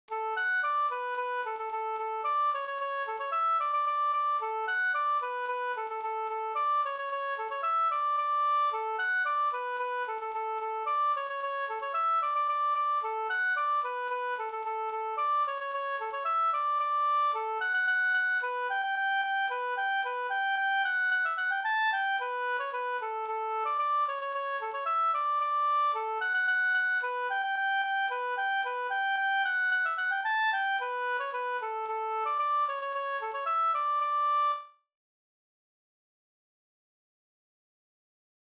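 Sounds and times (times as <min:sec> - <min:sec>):
polka music: 0:00.1 - 0:34.7.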